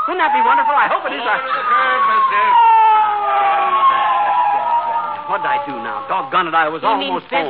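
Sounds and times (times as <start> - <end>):
police siren wailing: 0.0 - 7.4
speech: 0.1 - 3.8, 5.3 - 7.4.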